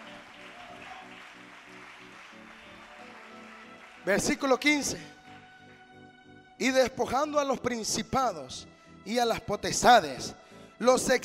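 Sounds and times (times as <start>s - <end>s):
audience clapping hands: 0.0s - 5.8s
speech: 4.0s - 5.2s, 6.6s - 11.2s.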